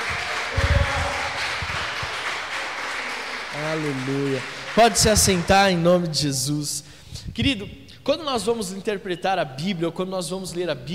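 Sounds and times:
audience applause: 0:00.0 - 0:05.9
speech: 0:03.6 - 0:10.9.

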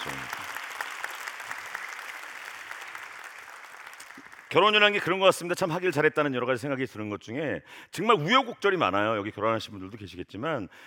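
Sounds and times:
audience applause: 0:00.0 - 0:05.1
speech: 0:04.5 - 0:10.8.

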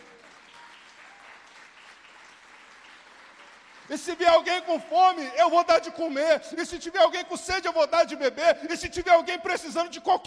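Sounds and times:
audience applauding: 0:00.0 - 0:04.6
speech: 0:03.9 - 0:10.2.

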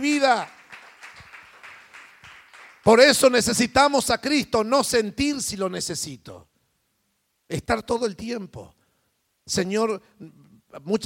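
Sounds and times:
speech: 0:00.0 - 0:00.6, 0:02.8 - 0:06.5, 0:07.5 - 0:08.8, 0:09.5 - 0:11.0
audience applauding: 0:00.0 - 0:03.3.

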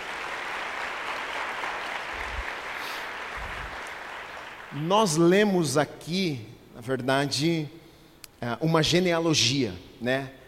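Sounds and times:
audience applause: 0:00.0 - 0:04.8
speech: 0:04.7 - 0:07.8, 0:08.4 - 0:10.4.

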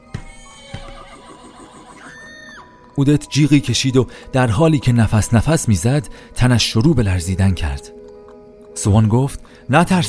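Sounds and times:
horse neighing: 0:00.5 - 0:02.9
speech: 0:03.0 - 0:08.0, 0:08.8 - 0:10.0.

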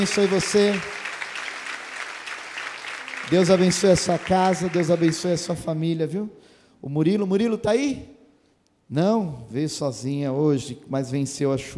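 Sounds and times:
speech: 0:00.0 - 0:01.0, 0:03.3 - 0:08.2, 0:08.9 - 0:11.7
crowd applauding: 0:00.0 - 0:05.8.

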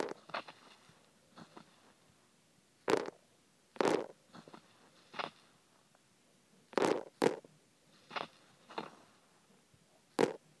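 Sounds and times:
sesame seeds pushed into an ear crackling: 0:00.0 - 0:02.0, 0:02.9 - 0:03.2, 0:03.8 - 0:05.6, 0:06.8 - 0:09.0, 0:10.1 - 0:10.4.

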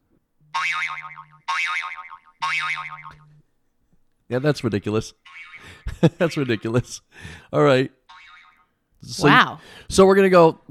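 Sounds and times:
timer wobbling boing sounds: 0:00.5 - 0:03.3, 0:05.2 - 0:06.6, 0:08.1 - 0:09.6
speech: 0:00.6 - 0:03.4, 0:04.3 - 0:08.0, 0:09.0 - 0:10.6.

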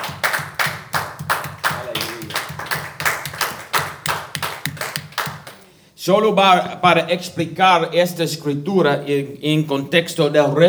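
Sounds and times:
audience clapping hands in rhythmic applause: 0:00.0 - 0:05.6
speech: 0:06.0 - 0:10.6.

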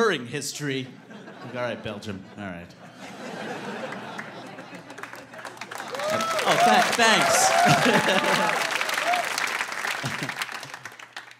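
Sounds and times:
speech: 0:00.0 - 0:03.1, 0:06.1 - 0:08.7
laughter: 0:00.9 - 0:10.9
audience clapping: 0:03.5 - 0:11.3
faint cheering and voices: 0:05.3 - 0:10.3.

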